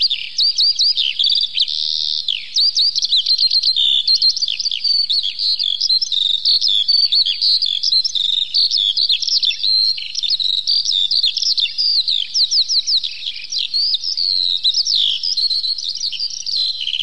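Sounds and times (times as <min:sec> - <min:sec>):
Eurasian skylark song: 0:00.0 - 0:17.0.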